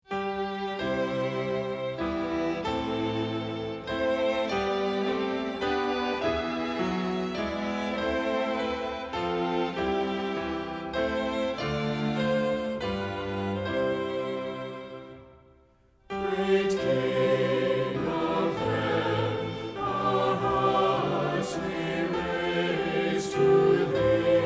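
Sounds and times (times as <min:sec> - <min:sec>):
music: 0:00.0 - 0:24.4.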